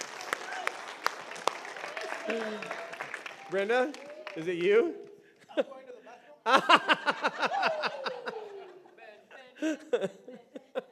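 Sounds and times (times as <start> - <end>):
scattered sharp hand claps: 0.0 - 5.2
speech: 2.3 - 2.8, 3.5 - 5.0, 5.6 - 5.8, 6.4 - 7.5, 9.6 - 10.2
laughter: 6.4 - 10.8.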